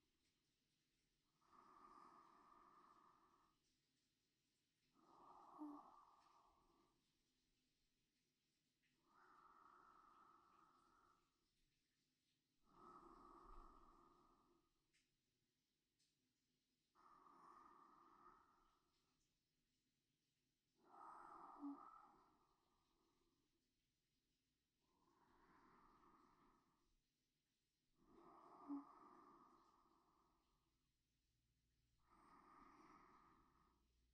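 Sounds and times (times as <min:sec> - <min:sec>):
sleep breathing: 0:00.2 - 0:07.7, 0:08.5 - 0:15.1, 0:16.8 - 0:19.4, 0:20.7 - 0:23.6, 0:24.8 - 0:27.1, 0:27.9 - 0:31.0, 0:31.9 - 0:34.1.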